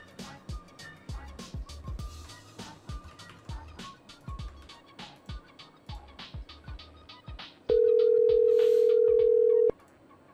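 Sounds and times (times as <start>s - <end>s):
steady electronic telephone tone on a call to a house phone: 7.7s - 9.7s.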